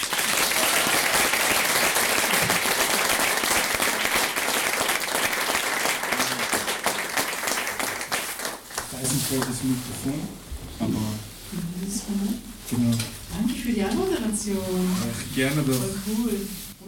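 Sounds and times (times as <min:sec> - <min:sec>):
audience applause: 0:00.0 - 0:09.8
speech: 0:09.3 - 0:16.8.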